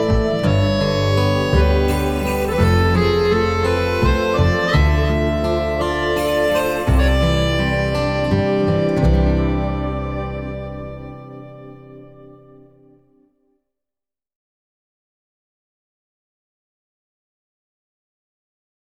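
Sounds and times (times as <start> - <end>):
accordion: 0.0 - 12.8.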